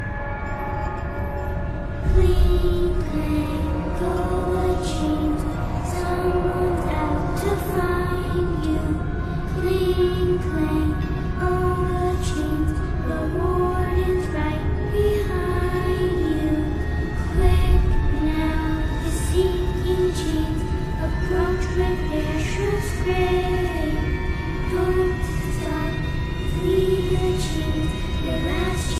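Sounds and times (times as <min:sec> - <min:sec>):
scary music: 0:00.0 - 0:28.9.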